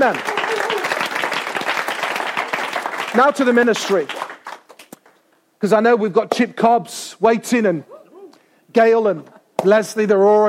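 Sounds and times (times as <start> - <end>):
speech: 0.0 - 0.3, 3.1 - 4.2, 5.6 - 8.0, 8.7 - 10.4
audience applause: 0.0 - 4.9.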